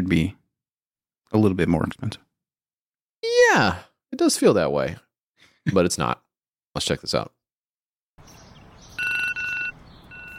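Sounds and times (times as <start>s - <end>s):
speech: 0.0s - 0.4s, 1.3s - 2.3s, 3.2s - 6.2s, 6.8s - 7.4s
phone alarm ringtone: 9.0s - 10.3s.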